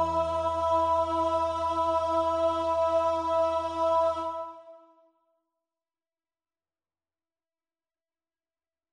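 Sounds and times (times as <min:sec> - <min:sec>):
alto choir part practice: 0:00.0 - 0:04.9.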